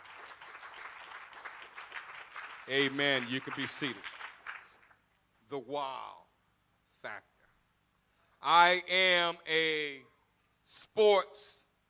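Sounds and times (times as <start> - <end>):
audience clapping hands: 0.0 - 5.0
speech: 2.7 - 4.2, 5.5 - 6.2, 7.0 - 7.3, 8.4 - 10.1, 10.7 - 11.6.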